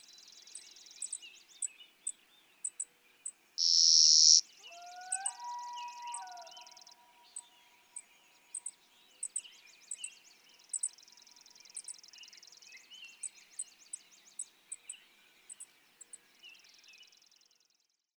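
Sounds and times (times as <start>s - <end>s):
Clay-colored Sparrow: 0.0s - 5.4s, 6.1s - 17.2s.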